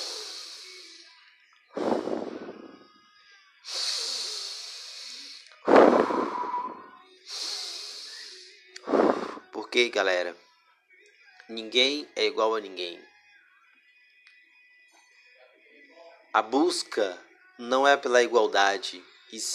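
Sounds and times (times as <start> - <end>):
deep breaths: 0.0 - 1.1, 1.8 - 3.0, 3.7 - 9.5
speech: 9.7 - 10.5, 11.5 - 13.1, 16.4 - 19.5.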